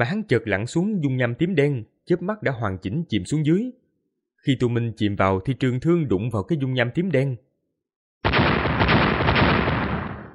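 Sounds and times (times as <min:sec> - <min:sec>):
speech: 0:00.0 - 0:03.8, 0:04.4 - 0:07.5
explosions: 0:08.2 - 0:10.3.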